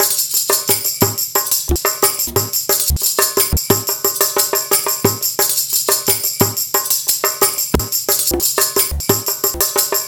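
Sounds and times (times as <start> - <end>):
modern percussion loops on MPC60: 0.0 - 10.0.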